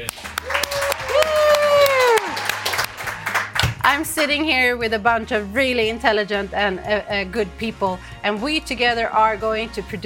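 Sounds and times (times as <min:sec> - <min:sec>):
studio applause: 0:00.0 - 0:03.8
speech: 0:03.9 - 0:10.0.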